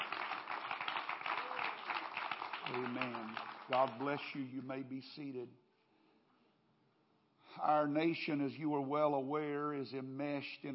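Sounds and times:
audience clapping: 0:00.0 - 0:04.4
speech: 0:02.7 - 0:05.6, 0:07.6 - 0:10.7.

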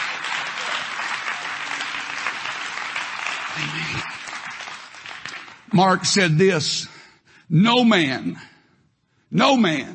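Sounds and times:
large group clapping in praise: 0:00.0 - 0:05.8
speech: 0:03.6 - 0:04.1, 0:05.7 - 0:06.9, 0:07.5 - 0:08.5, 0:09.3 - 0:09.9.

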